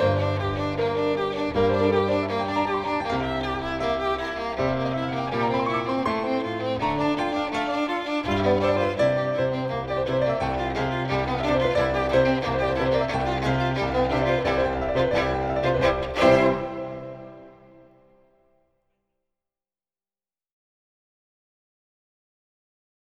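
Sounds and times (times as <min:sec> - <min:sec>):
violin sonata: 0:00.0 - 0:18.2.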